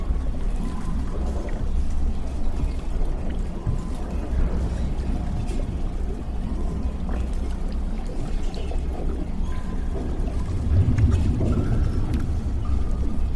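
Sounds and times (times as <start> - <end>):
churning pouring water: 0.0 - 13.3
low rumble of damaged underwater lab: 0.0 - 13.3.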